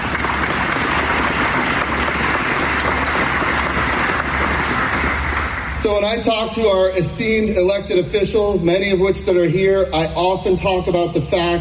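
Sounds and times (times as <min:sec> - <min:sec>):
crowd applauding: 0:00.0 - 0:07.0
speech: 0:05.8 - 0:11.5.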